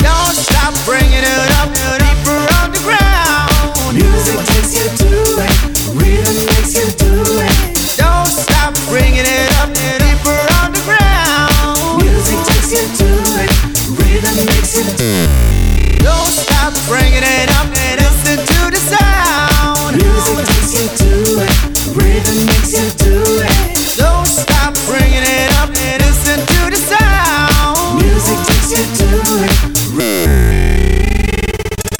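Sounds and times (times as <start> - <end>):
music loop: 0.0 - 31.9.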